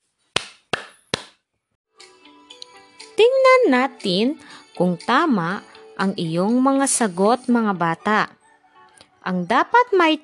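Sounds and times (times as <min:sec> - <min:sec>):
hand claps: 0:00.3 - 0:01.4
speech: 0:03.6 - 0:08.4, 0:09.2 - 0:10.2.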